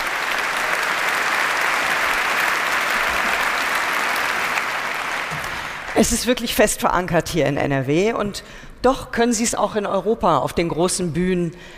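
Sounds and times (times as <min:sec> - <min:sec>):
audience applause: 0:00.0 - 0:06.3
speech: 0:06.0 - 0:11.7.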